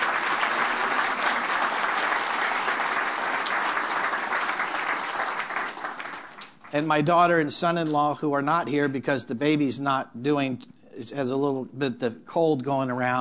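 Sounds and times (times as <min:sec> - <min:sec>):
audience applause: 0:00.0 - 0:07.1
speech: 0:06.7 - 0:13.1.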